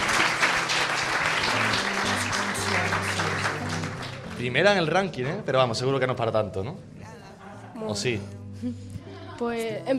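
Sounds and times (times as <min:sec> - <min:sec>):
audience applause: 0:00.0 - 0:04.8
speech: 0:04.4 - 0:07.0, 0:07.8 - 0:09.9.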